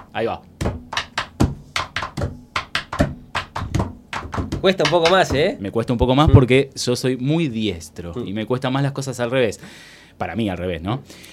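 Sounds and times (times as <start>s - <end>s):
pencil tapping on a table: 0.0s - 5.6s
speech: 0.2s - 0.5s, 4.6s - 11.3s.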